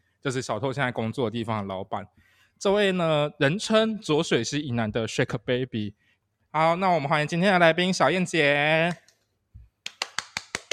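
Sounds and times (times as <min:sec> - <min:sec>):
speech: 0:00.2 - 0:09.0
hand clapping: 0:09.8 - 0:10.7.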